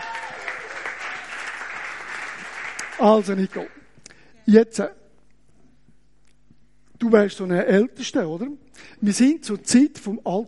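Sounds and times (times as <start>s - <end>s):
audience applause: 0.0s - 3.8s
speech: 3.0s - 3.8s, 4.5s - 5.0s, 7.0s - 10.4s.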